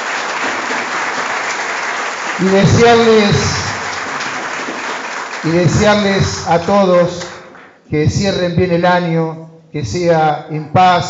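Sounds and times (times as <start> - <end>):
audience applause: 0.0 - 6.7
speech: 2.4 - 3.6, 5.4 - 7.2, 7.9 - 11.0.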